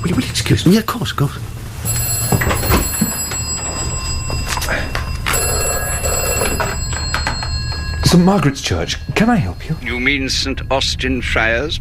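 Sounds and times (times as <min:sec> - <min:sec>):
speech: 0:00.0 - 0:02.0, 0:08.1 - 0:11.7
vestry telephone bell ringing: 0:01.8 - 0:10.7.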